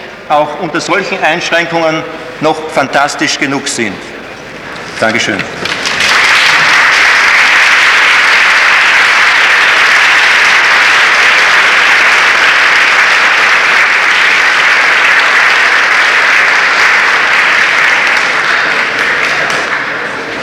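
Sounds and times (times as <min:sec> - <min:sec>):
speech: 0:00.3 - 0:04.2, 0:05.0 - 0:05.8
audience applause: 0:05.6 - 0:20.4.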